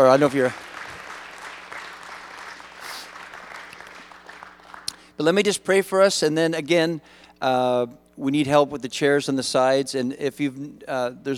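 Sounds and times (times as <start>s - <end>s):
speech: 0.0s - 0.7s, 5.2s - 11.3s
audience clapping: 0.0s - 5.1s.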